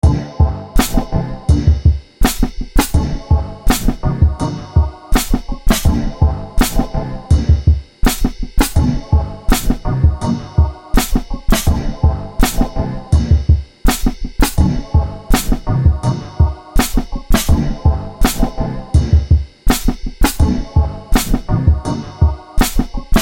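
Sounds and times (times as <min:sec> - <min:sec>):
boom bap beat: 0:00.0 - 0:23.1.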